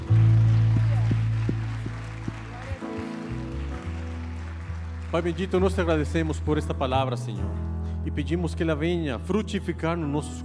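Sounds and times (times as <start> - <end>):
audience applause: 0.0 - 6.7
loud sustained low keyboard chord: 0.0 - 10.4
speech: 5.1 - 10.4.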